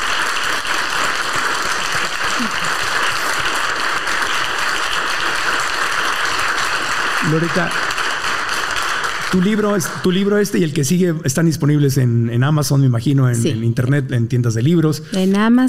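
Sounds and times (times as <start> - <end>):
audience applause: 0.0 - 11.5
speech: 7.3 - 7.8, 9.3 - 15.6.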